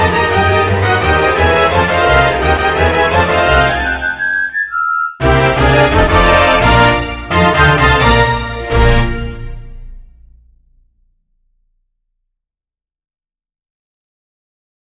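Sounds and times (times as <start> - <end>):
orchestral music: 0.0 - 11.0.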